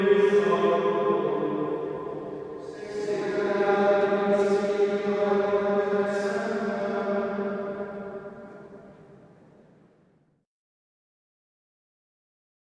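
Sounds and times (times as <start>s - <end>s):
monks chanting: 0.0s - 8.9s.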